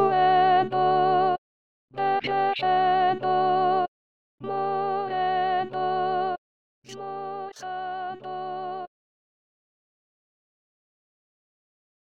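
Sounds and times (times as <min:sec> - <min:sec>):
soprano singing: 0:00.0 - 0:01.4, 0:02.0 - 0:08.9.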